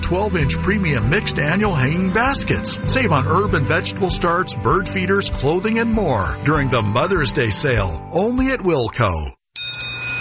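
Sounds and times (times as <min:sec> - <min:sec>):
speech: 0:00.1 - 0:09.4
bell ding as a car rolls into a Valvoline Instant Oil Change: 0:09.6 - 0:10.1.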